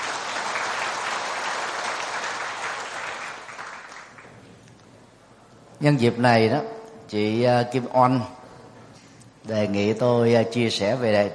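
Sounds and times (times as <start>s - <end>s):
audience applause: 0.0s - 4.5s
speech: 5.8s - 8.4s, 9.4s - 11.3s.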